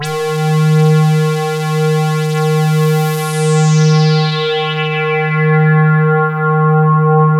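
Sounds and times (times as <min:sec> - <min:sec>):
synth sweep: 0:00.0 - 0:07.3.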